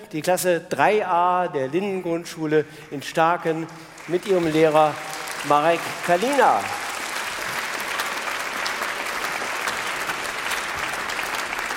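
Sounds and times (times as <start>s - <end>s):
speech: 0.1s - 6.8s
audience applause: 3.4s - 11.7s.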